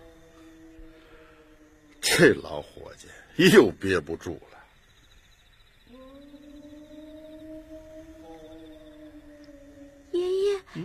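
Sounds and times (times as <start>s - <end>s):
person imitating a wolf howl: 0.0s - 2.3s, 5.9s - 10.8s
speech: 2.2s - 4.6s.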